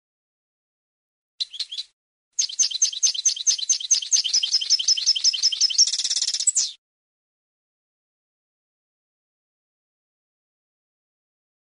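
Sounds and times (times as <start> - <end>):
European goldfinch singing: 1.4 - 6.8.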